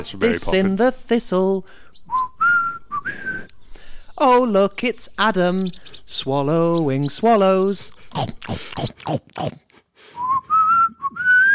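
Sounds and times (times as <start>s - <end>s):
speech: 0.0s - 2.3s, 4.2s - 9.6s
person whistling a short tune: 2.1s - 3.5s, 10.2s - 11.5s.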